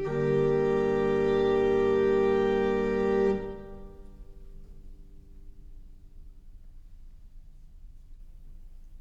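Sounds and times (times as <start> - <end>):
recorder playing a sarabande in faux bourdon: 0.0 - 3.9.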